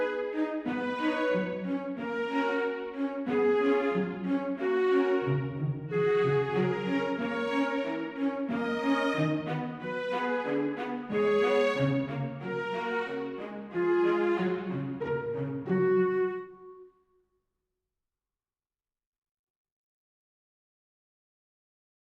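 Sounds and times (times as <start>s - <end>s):
classical music: 0.0s - 17.1s.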